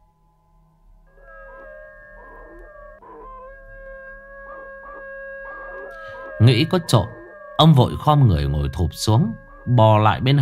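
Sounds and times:
neighbourhood dogs howling at their gates at night: 1.1 - 10.4
neighbourhood dogs yelping: 1.4 - 7.6
speech: 6.4 - 10.4.

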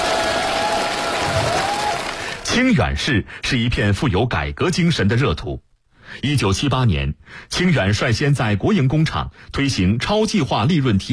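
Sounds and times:
crowd clapping seeing off a visiting leader at night: 0.0 - 2.5
speech: 2.6 - 11.1.

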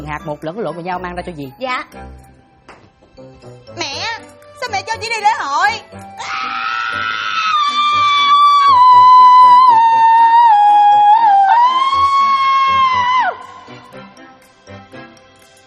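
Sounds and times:
speech: 0.0 - 2.3, 4.6 - 7.2
person screaming loudly: 6.2 - 13.4.

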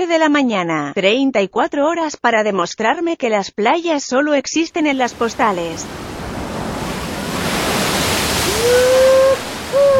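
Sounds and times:
speech: 0.0 - 6.1
wave crashing in a saltwater wave pool on the Castilian plateau in Spain: 4.7 - 9.9.

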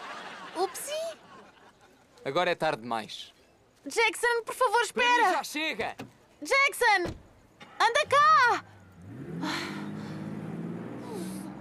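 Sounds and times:
laughter: 0.0 - 2.2
speech: 0.6 - 1.2, 2.2 - 7.2, 7.8 - 8.7
car engine revving and driving away: 8.0 - 11.6.

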